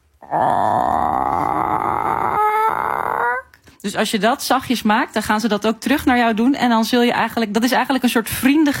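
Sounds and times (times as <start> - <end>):
speech: 0.2 - 0.8, 3.8 - 8.7
person imitating a chicken's drawn-out greeting call: 0.2 - 3.6.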